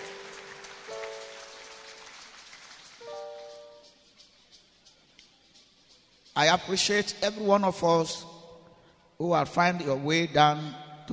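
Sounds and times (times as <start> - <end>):
audience clapping: 0.0 - 3.9
sustained keyboard chords: 0.0 - 4.3
speech: 6.4 - 8.3, 9.2 - 11.1.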